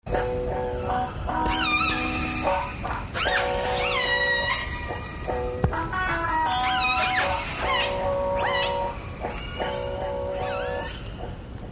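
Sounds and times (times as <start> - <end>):
reggae music: 0.1 - 10.9.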